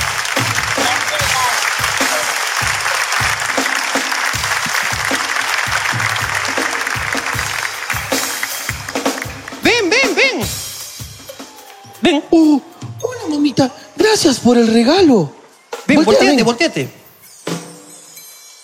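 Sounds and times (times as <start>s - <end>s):
crowd applause: 0.0s - 12.0s
voices cheering: 0.0s - 14.1s
speech: 14.4s - 15.4s, 16.0s - 17.0s.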